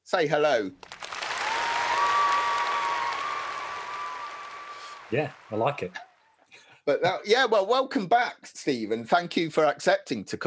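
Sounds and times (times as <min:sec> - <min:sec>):
speech: 0:00.1 - 0:00.9, 0:05.1 - 0:06.1, 0:06.9 - 0:10.4
edited-in crowd applause: 0:00.8 - 0:06.1.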